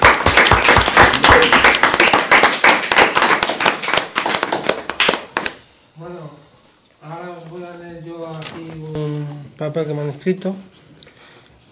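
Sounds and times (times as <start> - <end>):
audience applause: 0.0 - 5.6
speech: 9.6 - 10.7.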